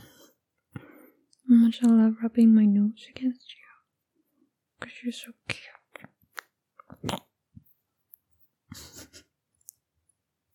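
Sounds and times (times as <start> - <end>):
speech: 1.5 - 3.7, 4.8 - 6.1, 7.0 - 7.3
voice imitating playful biting: 5.9 - 7.4.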